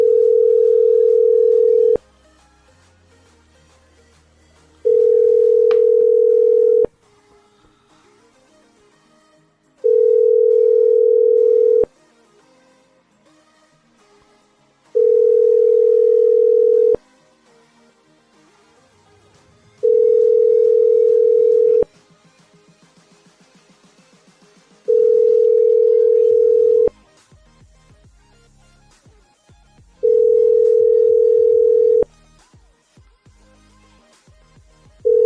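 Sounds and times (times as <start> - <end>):
telephone ringback tones after dialing a number: 0.0 - 2.0, 4.8 - 6.9, 9.8 - 11.9, 15.0 - 17.0, 19.8 - 21.9, 24.9 - 26.9, 30.0 - 32.1, 35.1 - 35.2.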